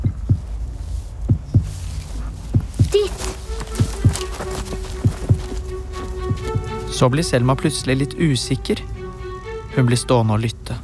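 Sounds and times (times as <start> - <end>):
heartbeat: 0.0 - 6.8
speech: 7.0 - 9.0, 9.8 - 10.8.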